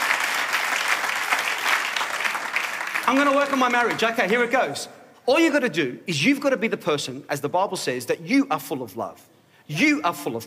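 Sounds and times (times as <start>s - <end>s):
audience clapping: 0.0s - 4.8s
speech: 3.1s - 10.4s.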